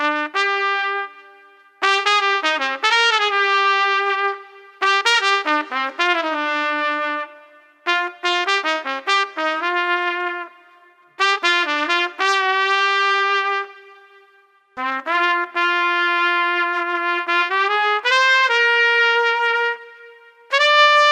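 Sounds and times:
lethargic street trumpet playing: 0.0s - 21.1s.

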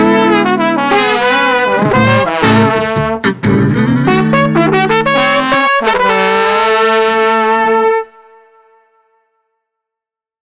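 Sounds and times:
street trombone: 0.0s - 8.2s
street trumpet: 0.0s - 9.3s.

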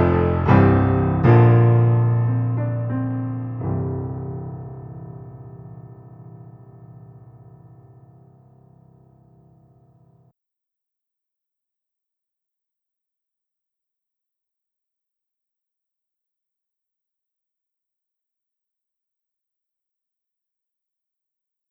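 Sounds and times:
piano lounge melody: 0.0s - 9.9s.

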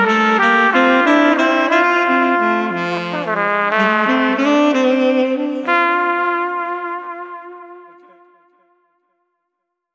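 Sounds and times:
saxophone: 0.0s - 8.9s
trumpet: 0.0s - 8.9s.

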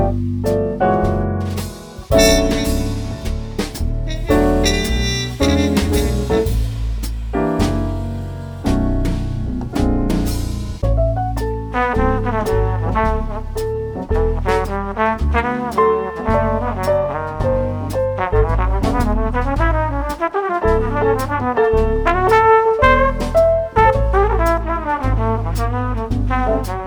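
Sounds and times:
jazz piano trio: 0.0s - 26.8s
cool trumpet: 2.0s - 8.0s, 11.4s - 26.8s.

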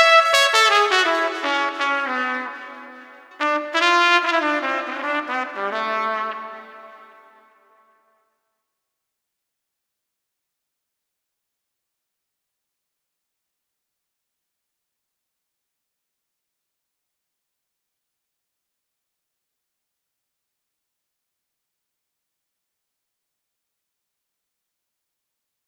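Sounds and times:
street trumpet playing dignified: 0.0s - 7.5s.

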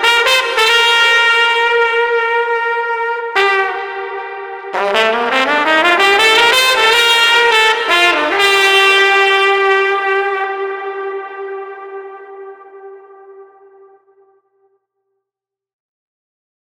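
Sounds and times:
street trumpet playing with reflections: 0.0s - 14.4s.

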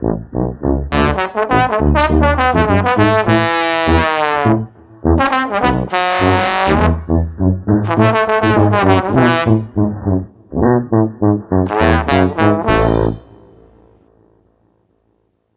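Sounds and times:
bouncy street trombone: 0.0s - 14.4s
bouncy street tuba: 0.0s - 14.4s.

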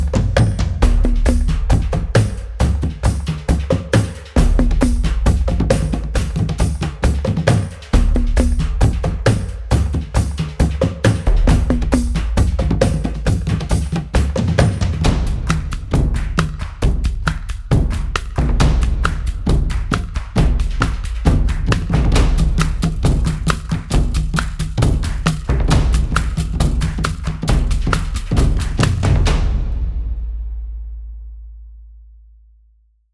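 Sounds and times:
Hawaiian percussion: 0.0s - 31.0s.

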